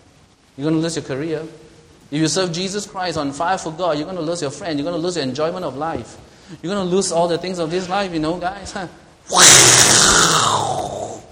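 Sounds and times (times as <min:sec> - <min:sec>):
speech: 0:00.6 - 0:09.9
person imitating a lion's roar: 0:09.3 - 0:11.2.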